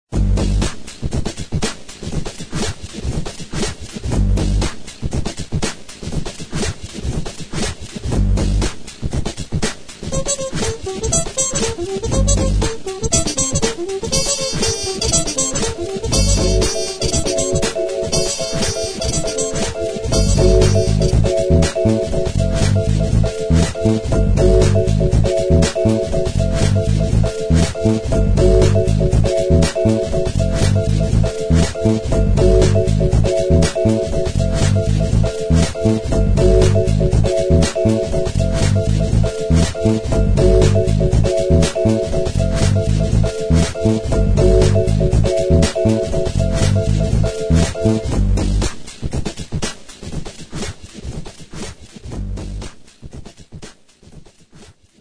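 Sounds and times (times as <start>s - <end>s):
jam skating music: 0.2s - 55.0s.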